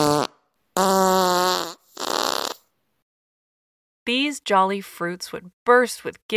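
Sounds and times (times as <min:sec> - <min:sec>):
fart sound effect: 0:00.0 - 0:02.7
speech: 0:04.1 - 0:06.3.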